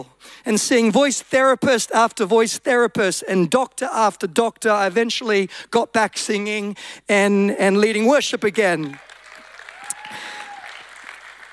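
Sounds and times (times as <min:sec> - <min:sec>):
speech: 0:00.0 - 0:09.1
audience applause: 0:08.8 - 0:11.5.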